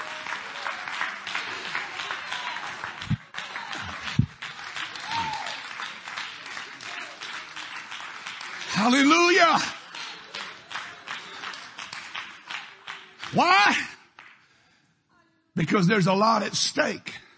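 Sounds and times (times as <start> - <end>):
audience clapping hands in praise: 0.0 - 14.5
speech: 8.8 - 9.8, 13.4 - 13.9, 15.6 - 17.2.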